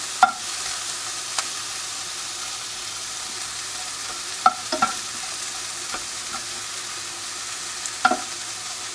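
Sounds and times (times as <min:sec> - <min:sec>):
shrimp and onion sizzling in a pan over medium heat: 0:00.0 - 0:08.9.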